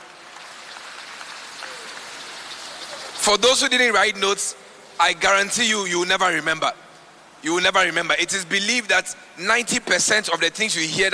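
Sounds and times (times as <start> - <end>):
audience clapping: 0.0 - 3.2
speech: 3.2 - 6.8, 7.4 - 11.1.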